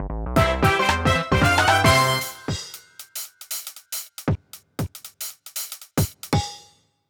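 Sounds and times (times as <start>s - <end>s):
course clear goal jingle: 0.4s - 2.6s.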